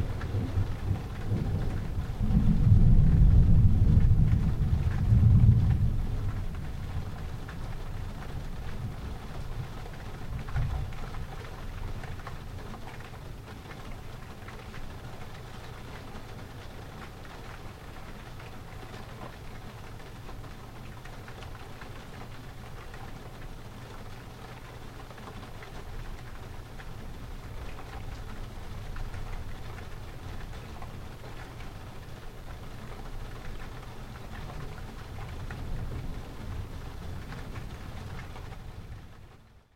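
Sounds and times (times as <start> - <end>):
thunder: 0.1 - 7.3, 34.3 - 39.0.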